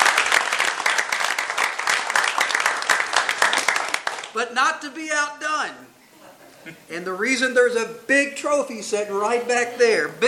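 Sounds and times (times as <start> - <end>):
audience applause: 0.0 - 4.4
speech: 4.4 - 6.0, 6.6 - 10.2.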